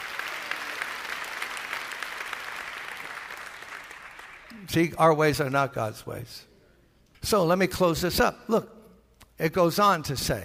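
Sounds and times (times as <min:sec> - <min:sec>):
church congregation clapping during a service: 0:00.0 - 0:04.8
speech: 0:04.6 - 0:06.5, 0:07.2 - 0:08.8, 0:09.4 - 0:10.4.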